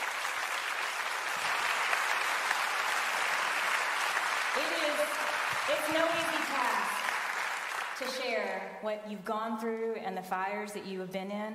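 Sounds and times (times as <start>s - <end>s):
audience applause: 0.0s - 8.3s
speech: 4.6s - 7.0s, 8.0s - 11.5s.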